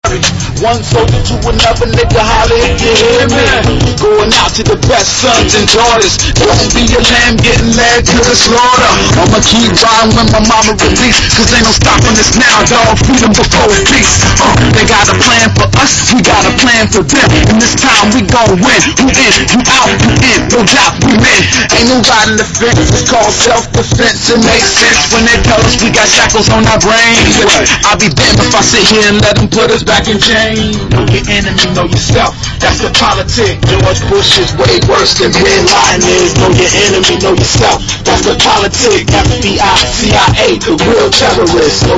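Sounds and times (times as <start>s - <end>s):
hip hop music: 0.0s - 41.9s.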